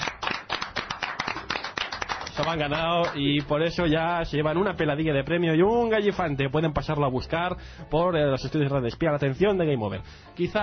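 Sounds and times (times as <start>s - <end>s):
steady brisk clapping: 0.0s - 3.7s
speech: 2.4s - 10.6s.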